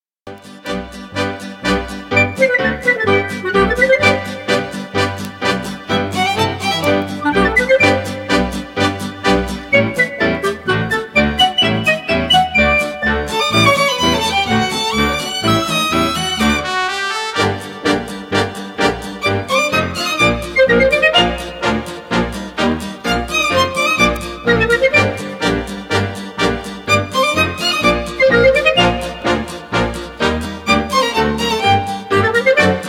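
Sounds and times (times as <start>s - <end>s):
military march ringtone: 0.3s - 32.8s.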